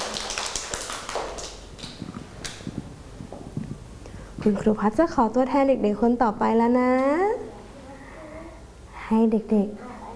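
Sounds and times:
children clapping hands: 0.0s - 2.7s
speech: 4.4s - 7.4s, 9.1s - 9.9s.

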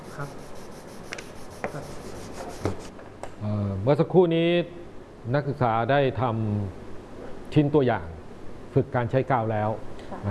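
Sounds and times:
sanding wood along the grain: 0.0s - 2.9s
speech: 0.2s - 0.4s, 3.8s - 6.8s, 7.5s - 10.2s.

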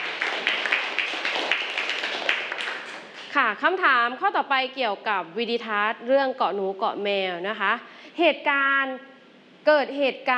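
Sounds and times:
children clapping: 0.0s - 3.3s
speech: 3.5s - 10.3s.

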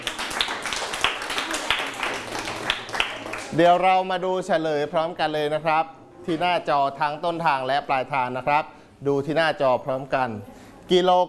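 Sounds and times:
students clapping hands: 0.0s - 3.6s
speech: 3.6s - 11.2s.

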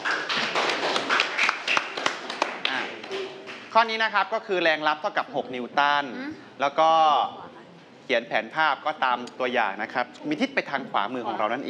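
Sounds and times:
students clapping: 0.0s - 3.7s
speech: 3.7s - 7.4s, 8.1s - 11.6s.

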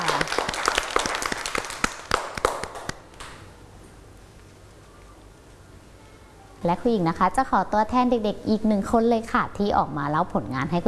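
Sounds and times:
group of children clapping: 0.0s - 3.4s
speech: 6.6s - 10.8s.

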